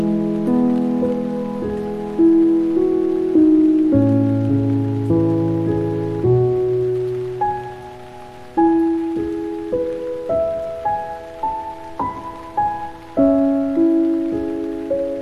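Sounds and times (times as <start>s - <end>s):
piano: 0.0s - 15.2s
rain: 0.0s - 15.2s.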